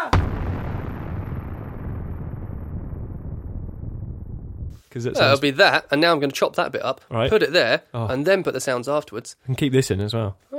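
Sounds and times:
explosion from a Call of Duty video game: 0:00.0 - 0:05.3
speech: 0:04.9 - 0:10.5.

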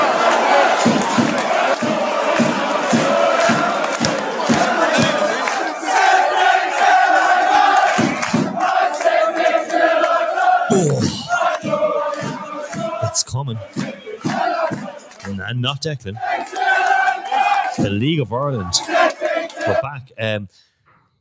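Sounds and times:
loud dense crowd shouting and chanting: 0:00.0 - 0:20.4
speech: 0:15.6 - 0:16.6, 0:17.8 - 0:20.7.

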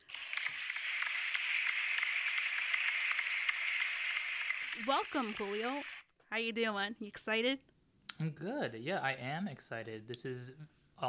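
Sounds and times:
small round of applause: 0:00.0 - 0:05.9
speech: 0:04.8 - 0:11.0.

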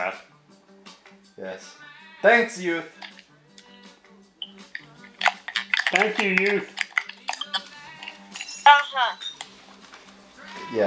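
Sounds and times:
speech: 0:00.0 - 0:00.3, 0:01.4 - 0:03.1, 0:05.9 - 0:06.8, 0:08.7 - 0:09.3
glass breaking: 0:05.2 - 0:09.5.

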